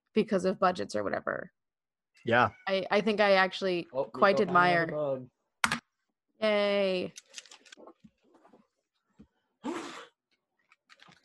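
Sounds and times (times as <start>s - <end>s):
speech: 0.2s - 1.6s, 2.2s - 5.4s, 6.4s - 7.5s
sneeze: 9.6s - 10.2s.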